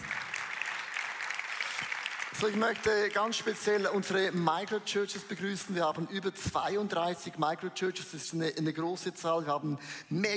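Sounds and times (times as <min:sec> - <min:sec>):
audience applause: 0:00.0 - 0:03.8
speech: 0:02.4 - 0:10.3.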